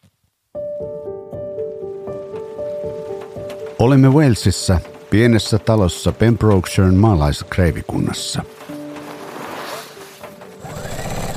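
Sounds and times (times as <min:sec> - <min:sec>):
speech: 0:03.8 - 0:08.6
sewing machine humming as fabric is fed through at a dining table: 0:10.5 - 0:11.3.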